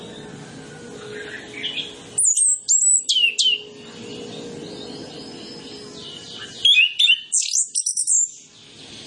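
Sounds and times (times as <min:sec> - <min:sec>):
quieter bird chatter: 0:01.1 - 0:09.0.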